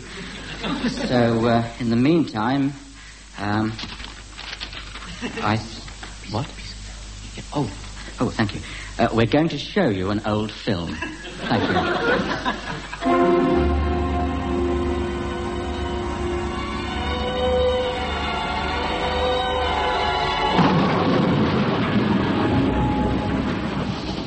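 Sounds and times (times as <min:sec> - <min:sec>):
laughter: 0:00.0 - 0:01.4, 0:05.0 - 0:05.6, 0:10.9 - 0:13.1
speech: 0:00.8 - 0:02.8, 0:03.4 - 0:04.0, 0:05.2 - 0:06.6, 0:07.4 - 0:13.3
train whistle: 0:13.0 - 0:21.1, 0:22.1 - 0:23.9
train chugging slowly through the night: 0:13.0 - 0:24.2.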